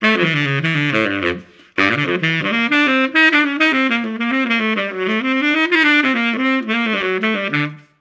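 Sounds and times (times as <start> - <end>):
tuba: 0.0 - 7.9.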